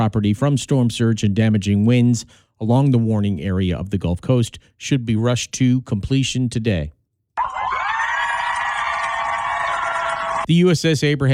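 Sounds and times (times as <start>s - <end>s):
speech: 0.0s - 7.0s, 10.5s - 11.3s
large crowd of family members cheering at aircraft carrier homecoming: 7.4s - 10.5s.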